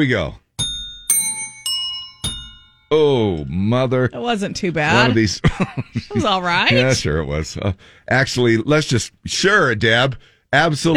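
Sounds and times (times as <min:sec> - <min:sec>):
speech: 0:00.0 - 0:00.4, 0:02.9 - 0:10.9
bell ringing: 0:00.6 - 0:03.6
laughter: 0:04.9 - 0:07.8.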